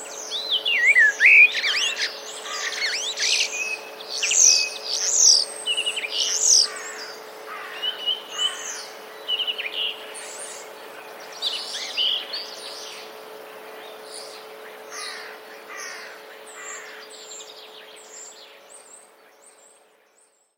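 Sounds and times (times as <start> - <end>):
starling mimicking a blackbird: 0.0 - 19.7
starling mimicking a jay: 0.1 - 10.6, 14.1 - 18.3
black woodpecker calls: 0.1 - 13.2, 13.9 - 19.0.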